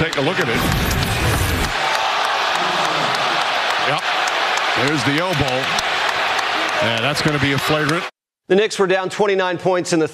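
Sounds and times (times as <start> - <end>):
speech: 0.1 - 1.5, 3.9 - 4.1, 4.8 - 5.8, 6.8 - 10.1
large arena crowd roaring in reaction to a replay: 0.1 - 8.1.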